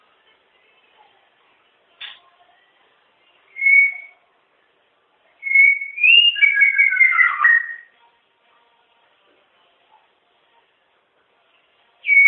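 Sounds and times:
White-rumped shama singing: 0:02.2 - 0:04.3, 0:05.3 - 0:08.8, 0:11.9 - 0:12.2.

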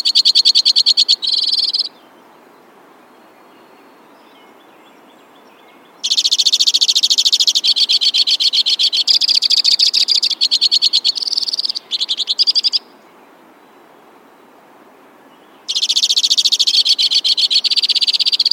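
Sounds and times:
White-winged crossbill trilling: 0:00.0 - 0:01.9, 0:06.0 - 0:12.8, 0:15.7 - 0:18.5.

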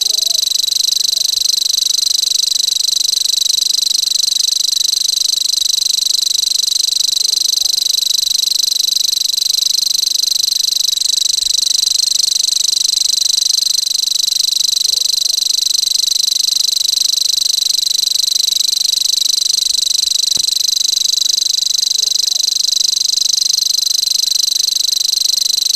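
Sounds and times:
grasshopper warbler: 0:00.0 - 0:25.7.

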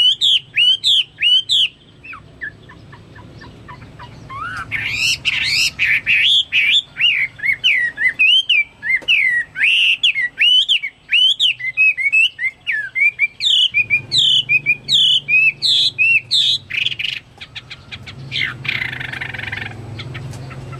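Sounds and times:
Chinese hwamei song: 0:00.0 - 0:19.8.

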